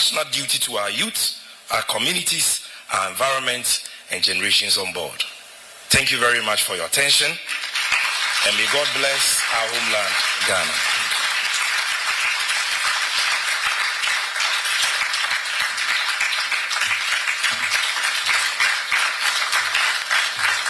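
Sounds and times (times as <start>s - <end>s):
speech: 0.1s - 5.3s, 5.9s - 7.6s, 8.4s - 10.9s
audience applause: 7.5s - 20.6s.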